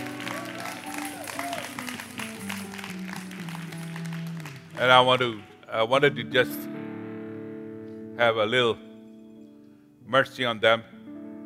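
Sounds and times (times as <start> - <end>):
applause for worship team: 0.0 - 5.5
speech: 4.8 - 6.7, 8.2 - 8.8, 10.1 - 11.0.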